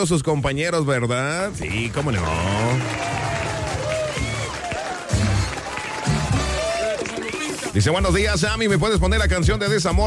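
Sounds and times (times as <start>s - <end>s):
speech: 0.0s - 3.4s, 7.7s - 10.0s
applause: 1.6s - 7.9s.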